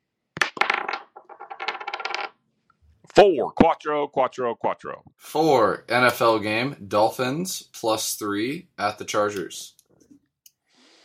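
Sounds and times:
dice being rolled: 0.4s - 2.4s
speech: 3.1s - 9.8s.

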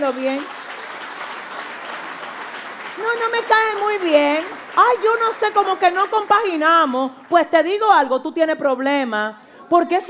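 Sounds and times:
speech: 0.0s - 0.6s, 3.0s - 10.0s
audience applause: 0.0s - 7.0s.

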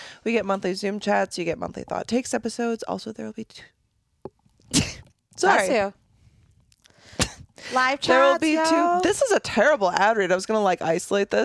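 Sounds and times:
speech: 0.2s - 3.8s, 4.7s - 6.0s, 7.1s - 11.4s
person sneezing: 4.7s - 5.1s.

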